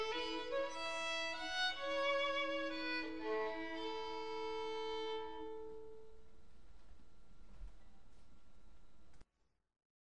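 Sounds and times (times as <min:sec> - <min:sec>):
Scottish air melody: 0:00.0 - 0:06.2.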